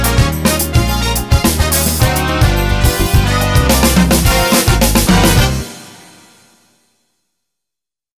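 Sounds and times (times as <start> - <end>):
latin groove: 0.0 - 6.2.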